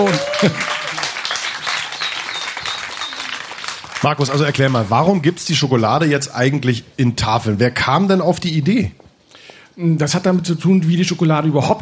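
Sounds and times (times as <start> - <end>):
speech: 0.0 - 0.8, 4.0 - 9.0, 9.8 - 11.8
audience applause: 0.0 - 5.2.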